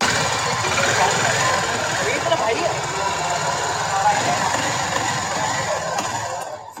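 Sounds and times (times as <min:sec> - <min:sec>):
Harley X440 motorcycle engine revving: 0:00.0 - 0:06.7
laughter: 0:00.2 - 0:06.7.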